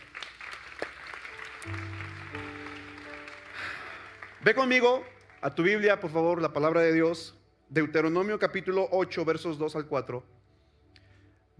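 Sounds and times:
audience applause: 0:00.0 - 0:05.6
organ or keyboard chords: 0:00.9 - 0:08.9
speech: 0:01.6 - 0:02.0, 0:04.4 - 0:10.4.

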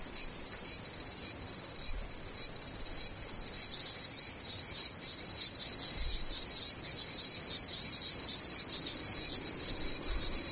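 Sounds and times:
cicadas droning: 0:00.0 - 0:10.5.

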